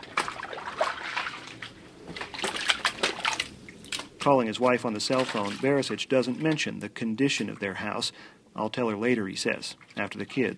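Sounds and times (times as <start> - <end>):
wading through inches of muck indoors: 0.0 - 7.9, 9.0 - 10.5
speech: 4.2 - 10.5.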